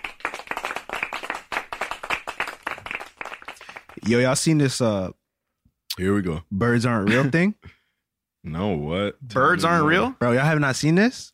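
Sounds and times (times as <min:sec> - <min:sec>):
people clapping: 0:00.0 - 0:04.5
speech: 0:04.0 - 0:05.2, 0:06.0 - 0:07.7, 0:08.4 - 0:11.3.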